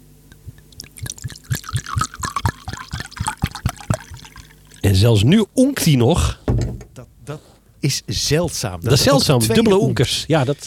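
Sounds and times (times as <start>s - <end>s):
drink pouring into a glass: 0.6s - 5.0s
speech: 4.9s - 6.4s, 7.3s - 10.6s.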